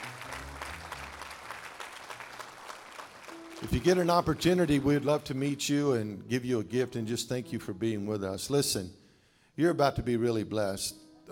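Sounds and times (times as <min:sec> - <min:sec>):
audience applause: 0:00.0 - 0:05.4
speech: 0:03.6 - 0:09.0, 0:09.6 - 0:11.3.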